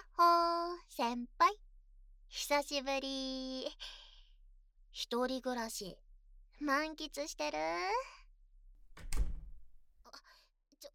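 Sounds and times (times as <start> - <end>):
speech: 1.0 - 1.6, 2.3 - 4.0, 5.0 - 6.0, 6.6 - 8.2
door thudding shut: 8.8 - 9.8.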